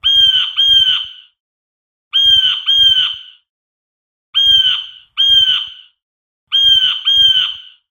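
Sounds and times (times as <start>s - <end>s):
blue jay harsh calls: 0.0s - 1.2s, 2.2s - 3.4s, 4.4s - 5.9s, 6.5s - 7.8s.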